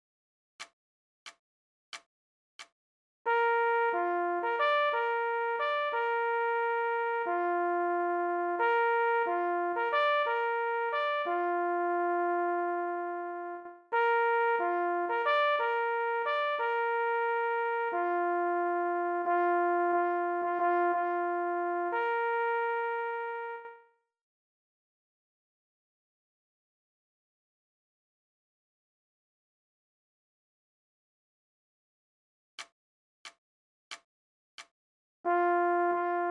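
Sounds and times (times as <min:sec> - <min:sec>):
leggiero signal horn: 0:03.3 - 0:23.9, 0:35.3 - 0:36.2.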